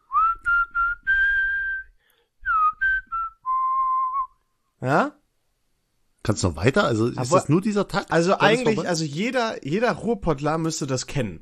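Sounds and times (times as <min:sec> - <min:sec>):
person whistling a short tune: 0:00.0 - 0:04.4
speech: 0:04.8 - 0:05.2, 0:06.3 - 0:11.4.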